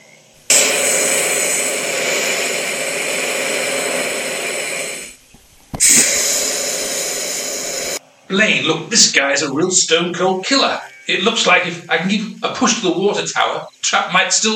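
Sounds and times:
flamethrower roar: 0.5 - 5.2, 5.8 - 8.0
speech: 8.3 - 14.5.

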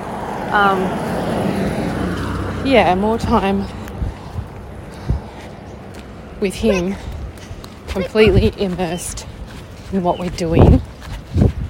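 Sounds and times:
car passing by: 0.0 - 6.5
speech: 0.5 - 1.6, 2.6 - 3.8, 6.4 - 7.1, 7.9 - 9.3, 9.9 - 10.9.

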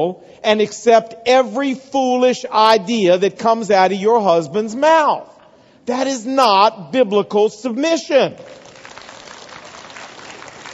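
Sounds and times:
speech: 0.0 - 8.6
women clapping: 8.5 - 10.7.

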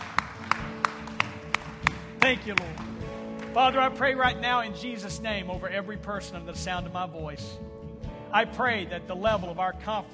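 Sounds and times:
audience clapping hands: 0.0 - 4.0
speech: 2.3 - 3.0, 3.6 - 10.1.

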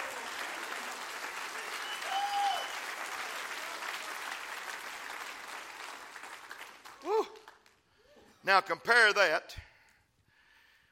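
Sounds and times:
audience clapping hands: 0.0 - 8.0
speech: 8.5 - 9.7.

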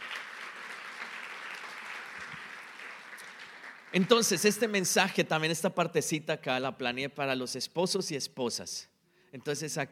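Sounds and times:
audience applause: 0.0 - 4.5
speech: 3.9 - 9.9.

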